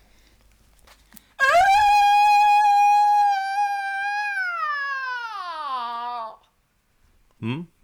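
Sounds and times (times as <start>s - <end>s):
falsetto scream imitating a metal singer: 1.4s - 6.5s.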